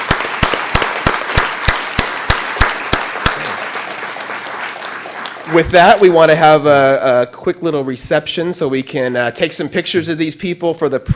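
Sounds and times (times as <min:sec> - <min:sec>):
crowd applause: 0:00.0 - 0:06.2
loud sharp clap: 0:00.0 - 0:06.2
speech: 0:05.5 - 0:11.1.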